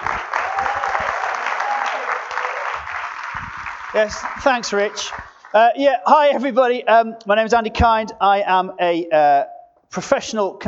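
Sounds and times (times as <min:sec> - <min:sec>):
warm audience applause: 0:00.0 - 0:05.6
speech: 0:04.0 - 0:10.6.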